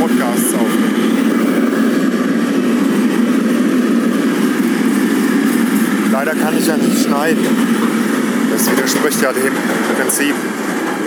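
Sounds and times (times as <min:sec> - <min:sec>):
freight train passing at level crossing: 0:00.0 - 0:11.0
speech: 0:06.6 - 0:07.8, 0:08.6 - 0:10.7.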